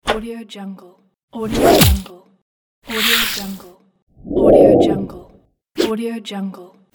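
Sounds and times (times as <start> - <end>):
swooshes: 2.9 - 3.6, 4.2 - 5.3.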